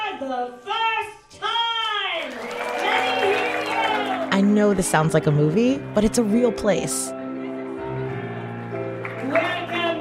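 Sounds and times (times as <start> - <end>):
speech: 0.2 - 1.5, 4.4 - 7.2
crowd cheering and whooping: 2.2 - 4.4
audience applause: 2.2 - 4.8, 8.5 - 9.9.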